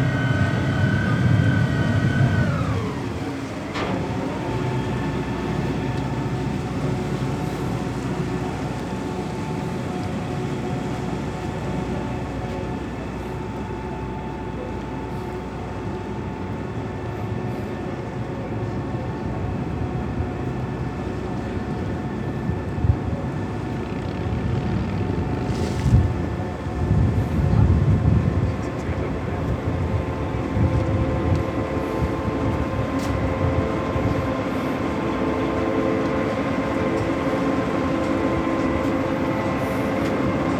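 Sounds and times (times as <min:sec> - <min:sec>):
ferry engine noise: 0:00.0 - 0:40.5.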